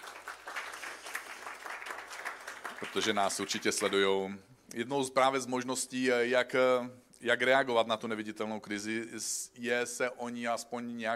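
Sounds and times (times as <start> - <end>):
applause: 0.0 - 4.2
speech: 2.8 - 11.1.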